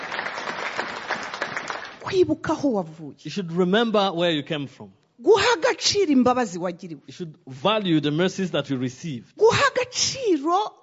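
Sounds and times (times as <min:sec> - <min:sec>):
church congregation clapping hands in praise during a service: 0:00.0 - 0:02.1
speech: 0:02.1 - 0:10.8.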